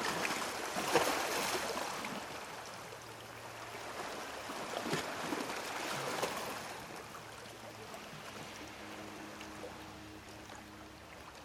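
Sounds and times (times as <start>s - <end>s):
sea at Sanary: 0.0s - 11.4s.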